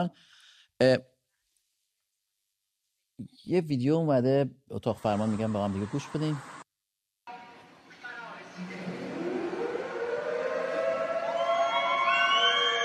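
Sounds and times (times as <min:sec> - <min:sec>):
speech: 0:00.0 - 0:01.1, 0:03.2 - 0:06.6
siren sounding from a mosque in Isfahan: 0:08.0 - 0:12.8.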